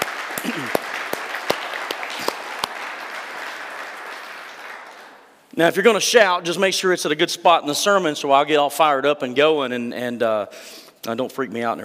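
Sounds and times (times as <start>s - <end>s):
audience clapping: 0.0s - 5.5s
speech: 5.6s - 11.8s.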